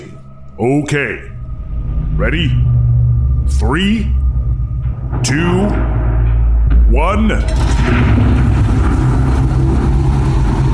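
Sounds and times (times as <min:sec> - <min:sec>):
speech: 0:00.1 - 0:01.4, 0:02.2 - 0:02.7, 0:03.5 - 0:04.2, 0:05.2 - 0:06.0, 0:06.9 - 0:08.3
big mechanical door opening: 0:01.3 - 0:10.7.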